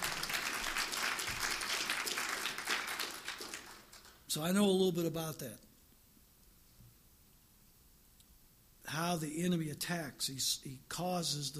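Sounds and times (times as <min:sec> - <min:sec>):
audience clapping: 0:00.0 - 0:04.3
speech: 0:04.4 - 0:05.7, 0:09.0 - 0:11.5.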